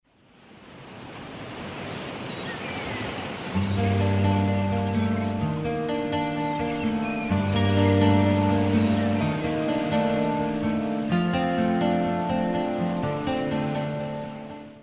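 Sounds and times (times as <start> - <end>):
sea waves: 0.1 - 14.8
music: 3.6 - 14.8.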